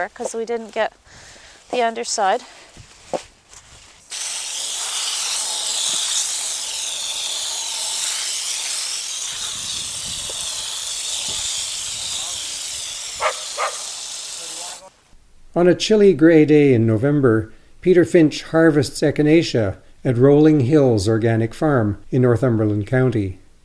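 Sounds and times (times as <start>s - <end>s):
speech: 0.0s - 3.3s, 15.6s - 23.4s
water spraying from a garden hose: 4.1s - 14.9s.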